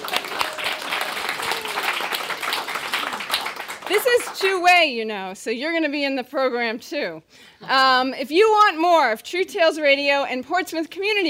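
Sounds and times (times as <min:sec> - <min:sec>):
audience applause for storytellers at a live storytelling show: 0:00.0 - 0:04.5
speech: 0:03.9 - 0:11.2.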